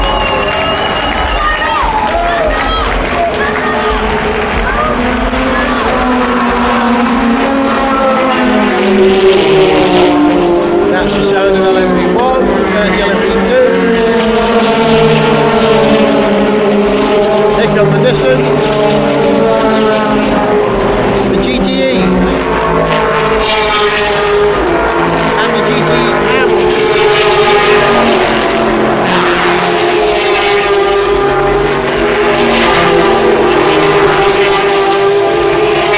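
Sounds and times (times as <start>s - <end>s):
crowd cheering and shouting: 0.0s - 6.2s
race car engines roaring by: 0.0s - 35.9s.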